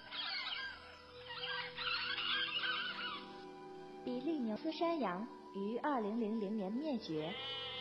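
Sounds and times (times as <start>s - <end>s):
Carolina parakeet chattering calls, species extinct since 1918: 0.1s - 3.3s
speech: 4.1s - 7.6s.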